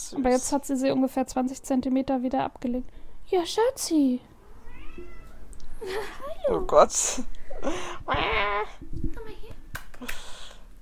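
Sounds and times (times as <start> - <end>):
speech: 0.1 - 4.3, 5.8 - 9.4
cat meowing: 4.4 - 5.6.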